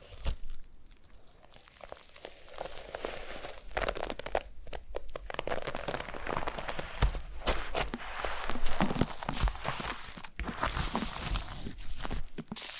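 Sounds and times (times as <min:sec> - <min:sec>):
foam being massaged: 0:02.3 - 0:04.3, 0:05.4 - 0:12.7.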